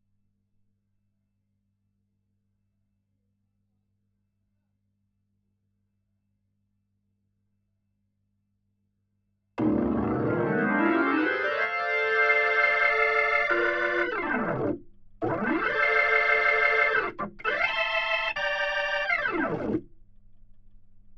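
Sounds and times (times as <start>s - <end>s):
Hammond organ: 9.6s - 19.8s.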